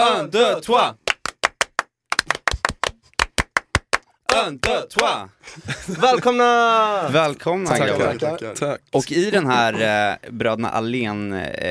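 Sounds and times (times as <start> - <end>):
speech: 0.1 - 1.0, 4.4 - 11.6
rhythmic French-style applause: 1.0 - 5.2
laughter: 5.4 - 7.2.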